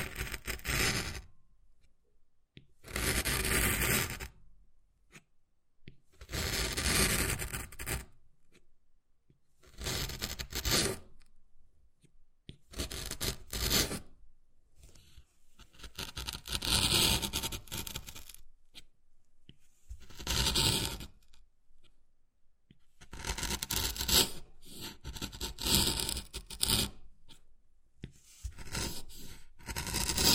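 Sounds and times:
wood carving scraping and scratching: 0.0 - 1.3, 2.8 - 4.3, 6.2 - 8.1, 9.6 - 11.1, 12.7 - 14.1, 15.0 - 18.9, 19.9 - 21.2, 23.0 - 27.1, 28.1 - 30.3.

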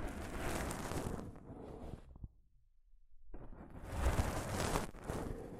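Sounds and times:
soft fabric brushing and rubbing over a microphone: 0.1 - 1.3, 3.9 - 5.4.

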